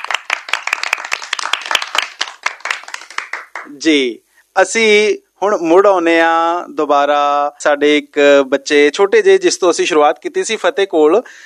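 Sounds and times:
audience clapping and applause: 0:00.0 - 0:03.8
speech: 0:03.6 - 0:11.4.

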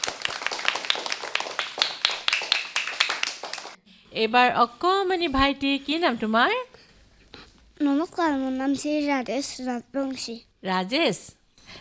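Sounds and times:
audience clapping at a children's singing event: 0:00.0 - 0:03.8
speech: 0:04.1 - 0:06.7, 0:07.8 - 0:11.4.

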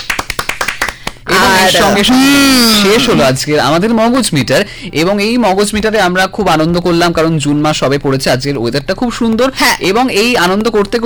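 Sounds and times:
hand claps for quiz winners: 0:00.0 - 0:02.1
speech: 0:01.6 - 0:11.0.

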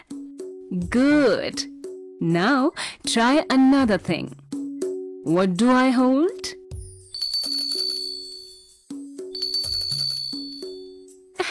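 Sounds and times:
speech: 0:00.7 - 0:04.4, 0:05.2 - 0:06.6
small bell ringing: 0:07.0 - 0:11.2.

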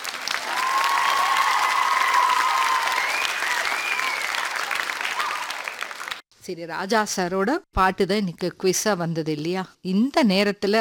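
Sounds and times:
loud applause: 0:00.0 - 0:06.2
speech: 0:06.4 - 0:10.7.

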